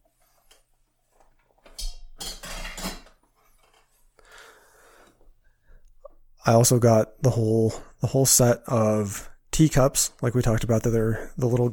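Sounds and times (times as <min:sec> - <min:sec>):
scraping and handling noises: 0:00.0 - 0:04.2
metal double boiler server pan clanking as set down: 0:01.8 - 0:03.2
speech: 0:06.4 - 0:11.7.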